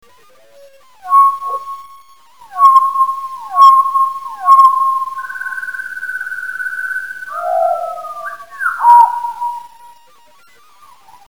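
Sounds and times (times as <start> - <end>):
song sparrow song slowed: 1.0 - 10.0.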